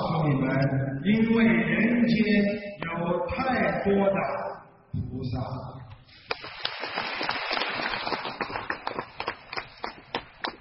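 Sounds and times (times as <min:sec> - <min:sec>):
speech: 0:00.5 - 0:07.1
audience applause: 0:06.3 - 0:10.5.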